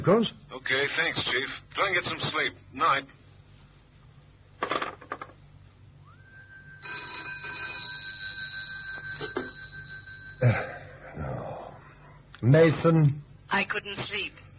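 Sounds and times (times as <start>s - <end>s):
speech: 0.0s - 3.2s, 12.4s - 14.4s
telephone bell ringing: 6.3s - 10.6s.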